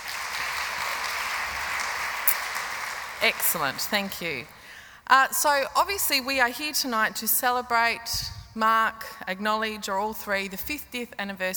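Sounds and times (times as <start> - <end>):
audience applause: 0.0 - 4.6
speech: 3.2 - 11.5.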